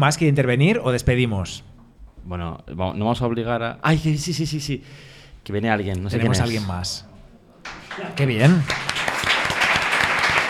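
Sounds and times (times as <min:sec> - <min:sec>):
speech: 0:00.0 - 0:08.9
audience applause: 0:07.6 - 0:10.4.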